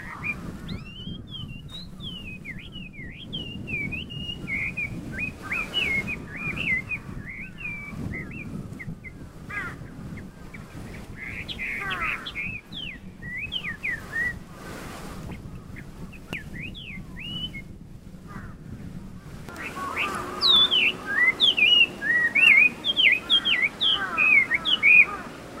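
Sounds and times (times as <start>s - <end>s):
Chinese hwamei whistling song: 0.0s - 8.6s, 11.2s - 14.4s, 16.4s - 17.7s, 19.6s - 25.5s.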